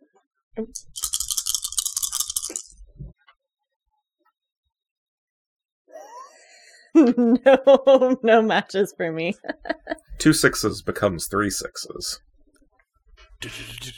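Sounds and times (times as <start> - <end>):
speech: 0.6 - 1.1, 7.0 - 12.3, 13.4 - 13.9
five dice being rolled: 0.6 - 2.8
laughter: 7.0 - 8.2, 9.2 - 10.2, 13.4 - 13.9.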